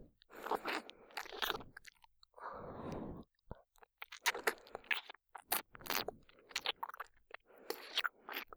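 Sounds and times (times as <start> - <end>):
licking the right ear: 0.3 - 2.1, 3.8 - 8.5.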